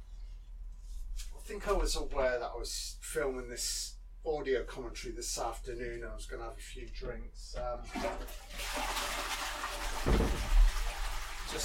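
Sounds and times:
speech: 1.5 - 9.4, 10.0 - 10.5
toilet flushing: 7.8 - 11.6.

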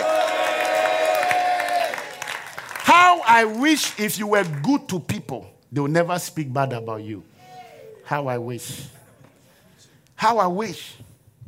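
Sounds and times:
audience clapping: 0.0 - 5.1
speech: 3.2 - 7.3, 8.1 - 9.0, 10.2 - 11.1.

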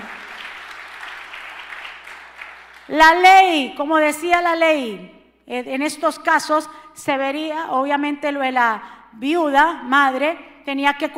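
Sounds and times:
audience applause: 0.0 - 2.9
speech: 2.9 - 11.1.

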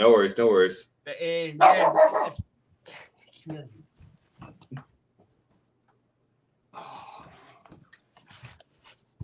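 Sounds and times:
speech: 0.0 - 3.8
dog barking: 1.6 - 2.4.

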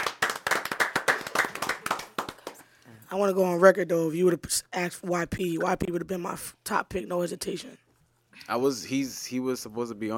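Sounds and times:
people clapping: 0.0 - 2.8
speech: 3.1 - 7.8, 8.4 - 10.1.

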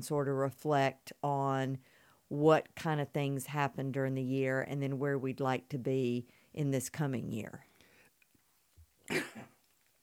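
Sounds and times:
speech: 0.0 - 7.7
sneeze: 9.1 - 9.6.

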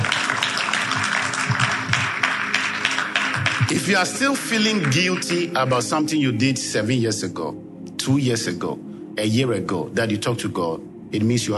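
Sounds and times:
audience clapping hands: 0.0 - 6.0
speech: 3.7 - 11.5.

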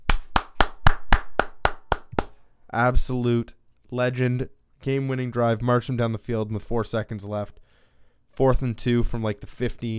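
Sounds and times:
sharp hand claps in celebration of a Detroit Lions football win: 0.0 - 2.4
speech: 2.7 - 7.6, 8.4 - 9.9.

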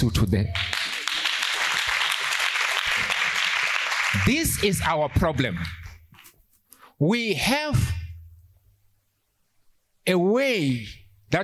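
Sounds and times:
speech: 0.0 - 0.7, 4.1 - 5.8, 7.0 - 8.0, 10.1 - 11.4
audience clapping: 0.5 - 5.9.

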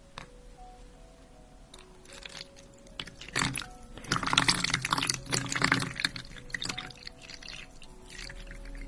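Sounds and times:
sterile saline solution poured, bubbling and splashing: 2.0 - 8.8
drips: 2.2 - 8.8.

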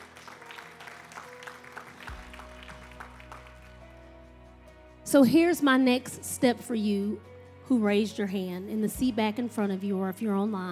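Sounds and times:
audience hand clap of praise: 0.0 - 3.9
speech: 5.1 - 10.7.

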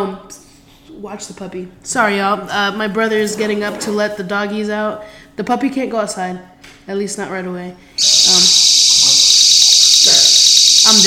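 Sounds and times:
speech: 1.0 - 8.8
house alarm going off: 8.0 - 11.0.

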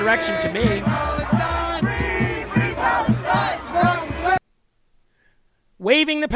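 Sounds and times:
protesters shouting at White House fence: 0.0 - 4.4.

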